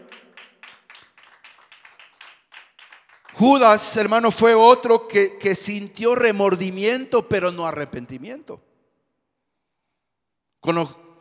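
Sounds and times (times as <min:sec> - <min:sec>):
audience clapping: 0:00.0 - 0:04.2
speech: 0:03.4 - 0:08.7, 0:10.6 - 0:11.0.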